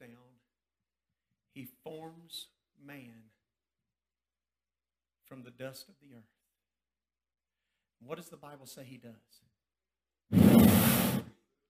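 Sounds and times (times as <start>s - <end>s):
speech: 1.6s - 3.3s, 5.3s - 6.4s, 8.0s - 9.5s
voice imitating God's breath blown into a man's nostrils: 10.4s - 11.3s.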